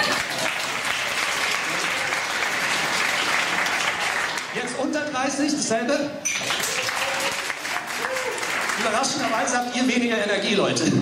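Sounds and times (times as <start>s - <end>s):
audience applause: 0.0s - 4.8s, 6.4s - 9.6s
speech: 5.2s - 6.7s, 8.8s - 10.9s.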